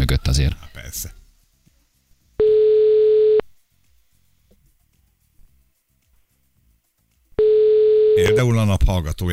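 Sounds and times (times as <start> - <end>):
speech: 0.2 - 1.2, 8.4 - 9.3
phone ringing tone from the caller's end: 2.4 - 3.4, 7.4 - 8.6.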